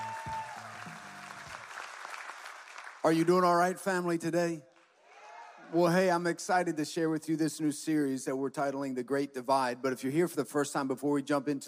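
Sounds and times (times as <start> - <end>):
crowd applauding: 0.0 - 3.8
speech: 3.0 - 4.7, 5.7 - 11.6.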